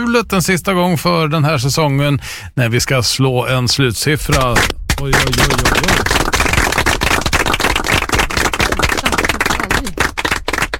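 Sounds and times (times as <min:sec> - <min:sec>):
speech: 0:00.0 - 0:06.4
loud dense applause: 0:04.3 - 0:10.7.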